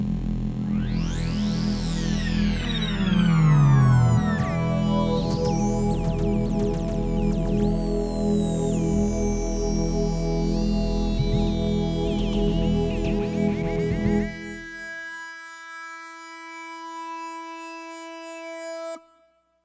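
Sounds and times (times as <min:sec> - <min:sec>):
space intro music: 0:00.5 - 0:14.8.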